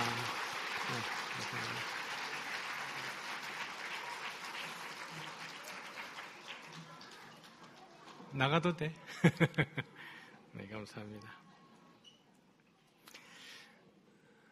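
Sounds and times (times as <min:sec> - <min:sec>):
audience applause: 0:00.0 - 0:07.9
speech: 0:08.4 - 0:11.4
laughter: 0:09.0 - 0:10.0.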